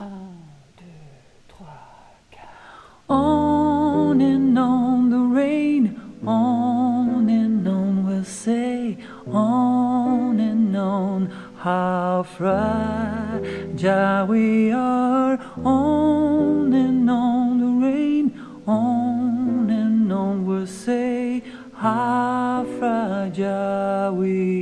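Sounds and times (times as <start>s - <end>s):
alto singing: 0.0s - 24.6s
piano: 1.7s - 24.6s.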